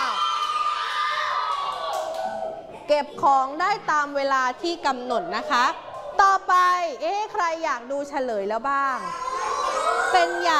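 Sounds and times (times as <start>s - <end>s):
class of children cheering and shouting: 0.0s - 2.6s, 9.1s - 10.5s
speech: 2.9s - 9.3s, 10.1s - 10.5s.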